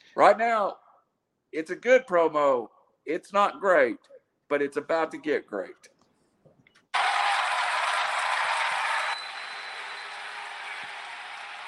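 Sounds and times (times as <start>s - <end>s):
speech: 0.2s - 0.8s, 1.5s - 5.9s
crowd booing: 7.0s - 11.6s.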